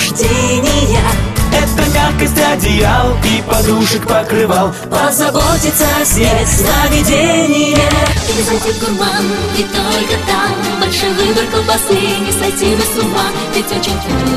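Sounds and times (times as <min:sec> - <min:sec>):
person singing in Russian: 0:00.0 - 0:14.3.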